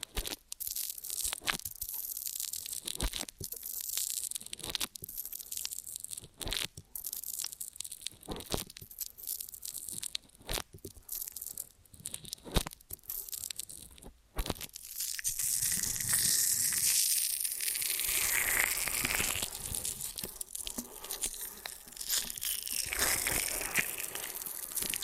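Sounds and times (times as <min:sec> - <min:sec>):
ear and scalp massage crinkling, scratching and rubbing: 0:00.0 - 0:25.0.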